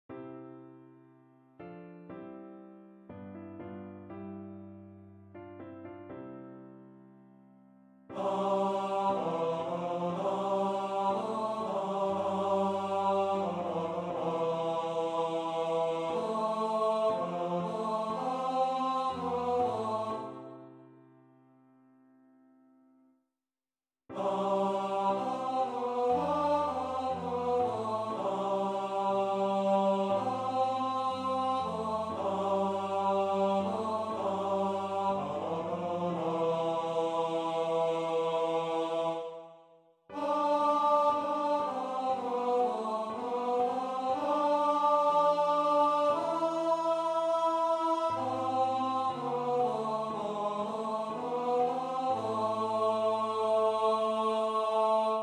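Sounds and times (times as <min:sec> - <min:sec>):
tenor singing: 0:08.1 - 0:20.5, 0:24.1 - 0:39.4, 0:40.1 - 0:55.2.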